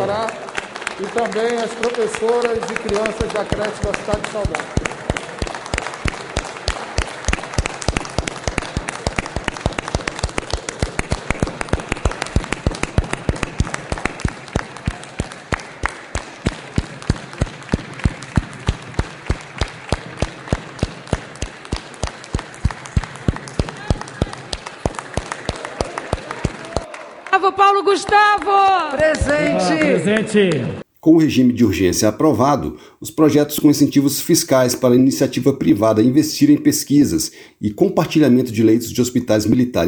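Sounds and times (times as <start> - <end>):
applause from a large crowd in tribute: 0.0 - 30.8
speech: 1.0 - 5.0, 27.4 - 39.8.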